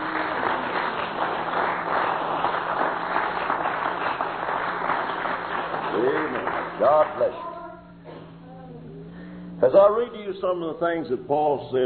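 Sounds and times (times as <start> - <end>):
audience applause: 0.0 - 7.3
speech: 6.8 - 7.5, 9.6 - 11.8.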